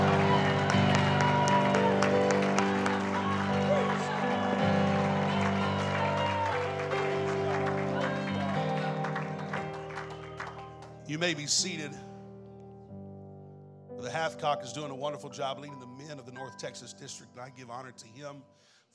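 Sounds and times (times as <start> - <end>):
people shouting praise to God: 0.0 - 9.6
people clapping joyfully: 0.0 - 11.4
speech: 11.1 - 12.1, 14.3 - 18.9.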